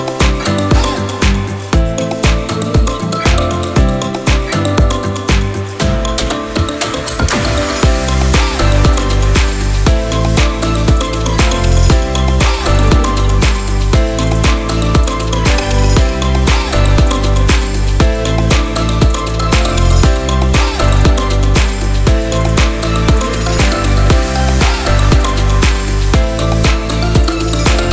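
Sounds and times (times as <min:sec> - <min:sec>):
energetic inspiring upbeat pop music: 0:00.0 - 0:27.9.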